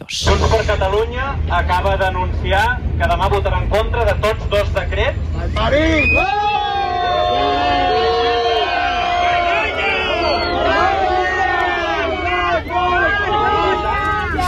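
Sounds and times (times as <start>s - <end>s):
speech: 0.1s - 6.6s
crowd in Plaza Catalunya, Barcelona, booing and jeering the Junts party: 5.6s - 14.4s.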